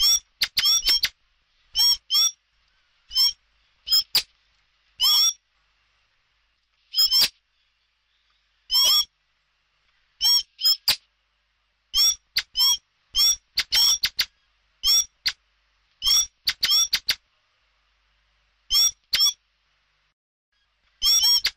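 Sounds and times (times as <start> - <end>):
common blackbird giving squawking call notes: 0.0 - 1.1, 1.7 - 2.4, 3.1 - 4.2, 5.0 - 5.4, 6.9 - 7.3, 8.7 - 9.1, 10.2 - 11.0, 11.9 - 15.4, 16.0 - 17.2, 18.7 - 19.4, 21.0 - 21.5.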